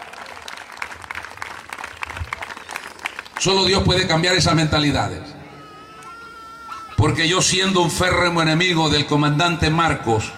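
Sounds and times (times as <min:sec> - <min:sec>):
audience applauding: 0:00.0 - 0:03.8
speech: 0:03.4 - 0:05.3, 0:07.0 - 0:10.3.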